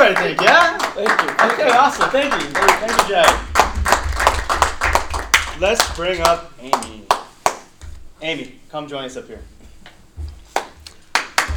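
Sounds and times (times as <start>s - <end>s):
scattered hand claps: 0.0s - 8.0s, 10.5s - 11.5s
speech: 1.8s - 3.5s, 5.6s - 7.1s, 8.2s - 9.6s.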